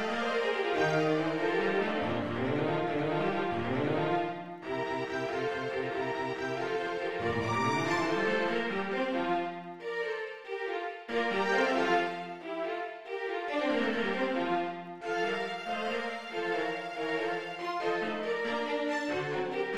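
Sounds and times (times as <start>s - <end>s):
MIDI string quartet in B-flat major: 0.0s - 19.7s.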